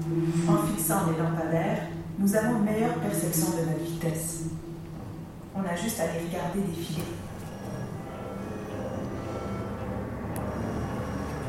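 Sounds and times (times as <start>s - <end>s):
speech: 0.0s - 4.6s, 5.6s - 7.2s
car approaching and passing: 7.2s - 11.4s.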